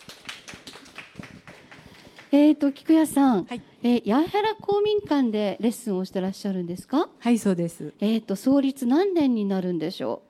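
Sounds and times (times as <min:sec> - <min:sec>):
audience applause: 0:00.0 - 0:02.3
speech: 0:02.3 - 0:10.2.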